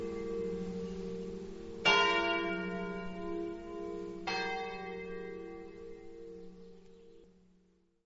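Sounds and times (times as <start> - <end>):
bells ringing in Avasinis: 0.0 - 6.6.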